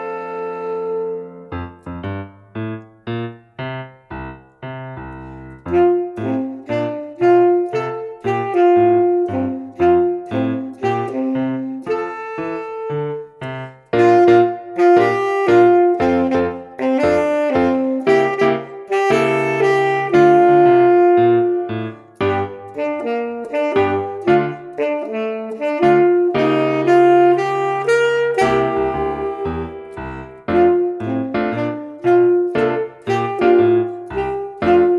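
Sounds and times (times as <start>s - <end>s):
jazz tenor saxophone: 0.0s - 3.9s, 5.0s - 34.9s.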